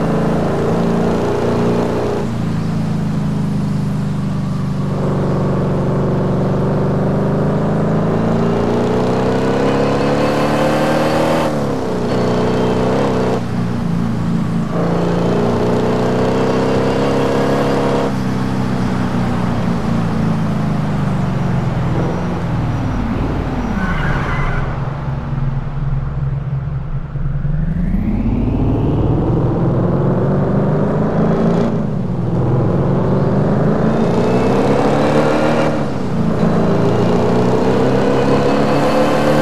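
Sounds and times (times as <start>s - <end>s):
Audi A6 4.2 quattro car engine: 0.0s - 39.4s.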